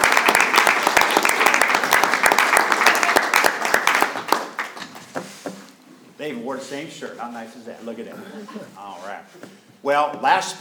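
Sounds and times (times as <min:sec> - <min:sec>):
audience applause: 0:00.0 - 0:05.1
speech: 0:06.3 - 0:10.5.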